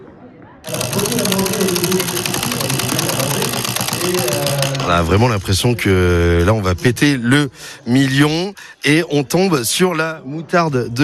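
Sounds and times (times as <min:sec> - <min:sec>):
speech: 0:00.6 - 0:02.9, 0:04.1 - 0:11.0
prize wheel spinning and clicking: 0:00.7 - 0:06.6.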